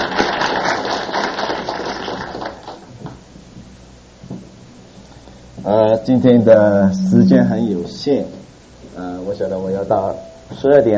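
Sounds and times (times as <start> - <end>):
audience applause welcoming a speaker: 0.0 - 2.9
speech: 5.7 - 8.4, 9.0 - 10.9.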